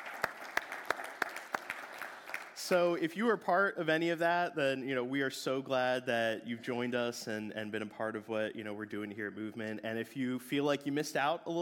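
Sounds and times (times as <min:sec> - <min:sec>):
audience applause: 0:00.0 - 0:02.7
speech: 0:02.6 - 0:11.5.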